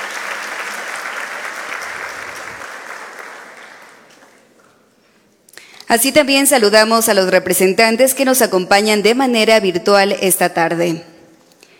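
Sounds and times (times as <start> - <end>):
audience applause: 0.0 - 4.8
speech: 5.9 - 11.1.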